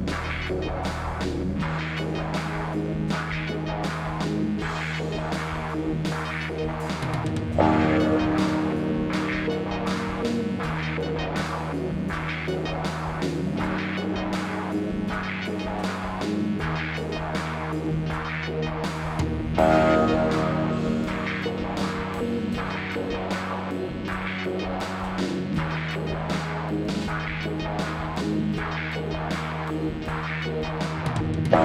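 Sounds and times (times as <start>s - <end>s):
drums: 0.0s - 31.6s.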